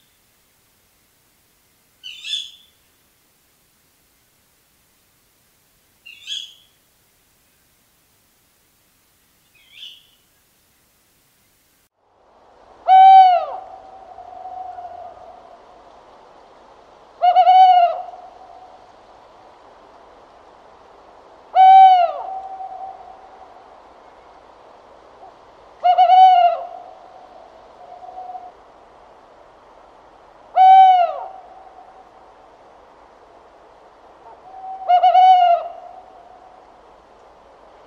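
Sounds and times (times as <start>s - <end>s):
tawny owl hooting: 2.0s - 2.8s, 6.1s - 6.8s, 9.6s - 10.2s, 12.8s - 15.5s, 17.2s - 18.7s, 21.5s - 23.5s, 25.8s - 28.6s, 30.5s - 31.8s, 34.2s - 36.4s.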